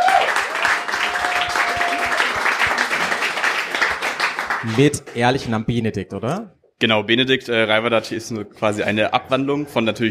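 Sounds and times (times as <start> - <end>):
audience applause: 0.0 - 5.3
speech: 4.6 - 10.0.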